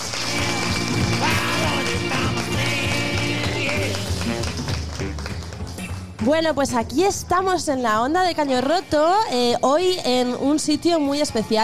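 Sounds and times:
audience applause: 0.0s - 6.0s
speech: 6.2s - 11.6s.

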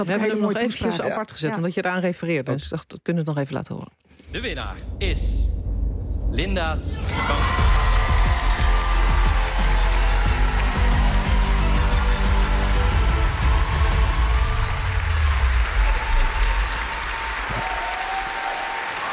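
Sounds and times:
speech: 0.0s - 5.5s, 6.3s - 7.7s
warm applause: 6.9s - 19.1s.

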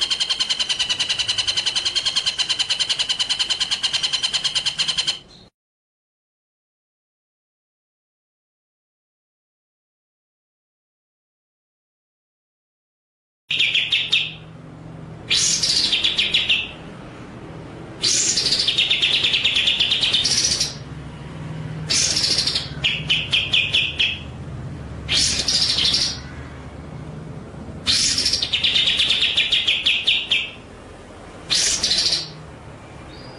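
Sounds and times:
White-rumped shama singing: 0.0s - 5.5s, 13.5s - 14.5s, 15.2s - 16.9s, 18.0s - 20.9s, 21.9s - 24.4s, 25.0s - 26.6s, 27.9s - 30.7s, 31.5s - 32.4s.

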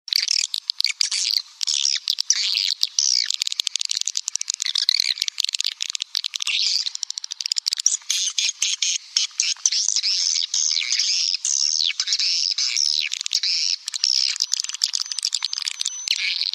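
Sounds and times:
bird song with rapid harsh chattering and squawky notes: 0.1s - 16.5s.

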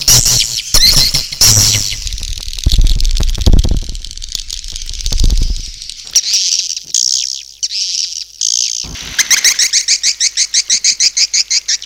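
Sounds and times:
many swiftlets chirping: 0.0s - 6.4s.

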